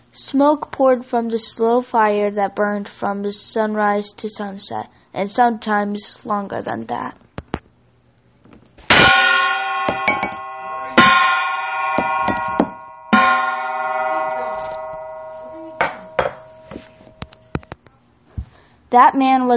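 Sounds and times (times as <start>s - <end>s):
speech: 0.2s - 7.2s, 18.9s - 19.5s
hammering red-hot iron on an anvil: 8.9s - 17.3s.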